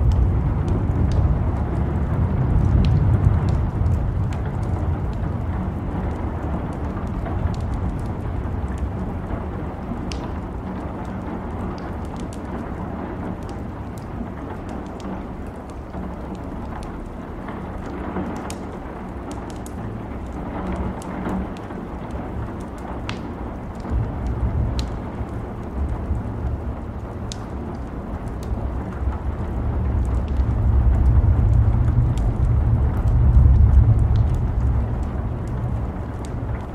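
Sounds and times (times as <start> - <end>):
thunder rumbling: 0.0 - 10.6, 19.9 - 36.7
rain falling: 0.0 - 36.7.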